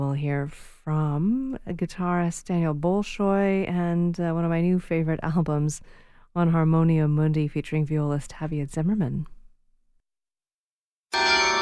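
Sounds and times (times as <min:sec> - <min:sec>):
speech: 0:00.0 - 0:09.4
carillon bells ringing: 0:11.1 - 0:11.6.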